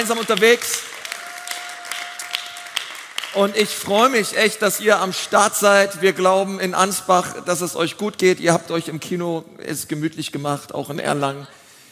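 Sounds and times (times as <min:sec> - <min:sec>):
speech: 0:00.0 - 0:00.8, 0:03.4 - 0:11.6
audience applause: 0:00.0 - 0:04.2.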